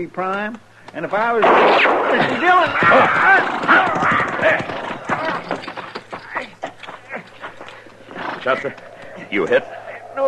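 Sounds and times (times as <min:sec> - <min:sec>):
speech: 0:00.0 - 0:04.8, 0:08.4 - 0:10.2
hooves clattering: 0:02.1 - 0:10.2
horse whinnying: 0:02.5 - 0:10.0.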